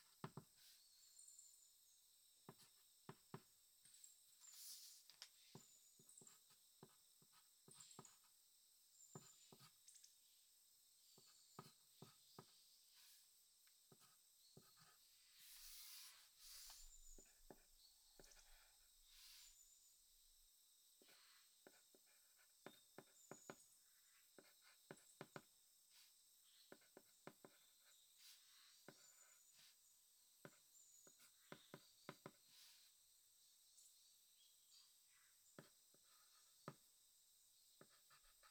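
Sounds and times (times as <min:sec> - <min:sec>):
diary writing sounds: 0:00.0 - 0:00.9, 0:02.4 - 0:03.5, 0:04.4 - 0:08.4, 0:09.0 - 0:09.8, 0:11.1 - 0:19.7, 0:21.0 - 0:33.0, 0:35.1 - 0:36.9, 0:37.8 - 0:38.4.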